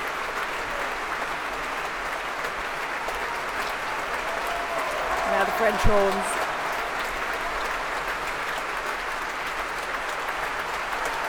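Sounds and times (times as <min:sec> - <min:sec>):
concert hall applause: 0:00.0 - 0:11.2
speech: 0:05.4 - 0:06.4.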